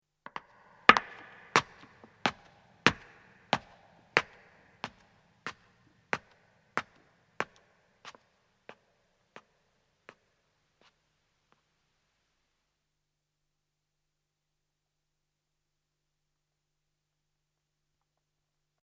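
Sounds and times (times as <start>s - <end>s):
woman's footsteps ascending on stone: 0.3s - 8.2s.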